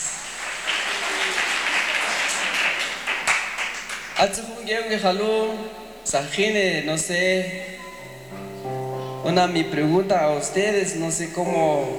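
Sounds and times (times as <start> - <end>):
audience applause: 0.0 - 4.3
speech: 4.2 - 8.4, 9.2 - 11.9.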